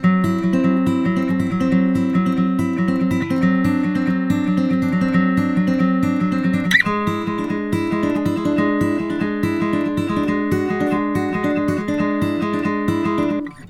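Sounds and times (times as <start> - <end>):
country guitar: 0.0 - 13.6.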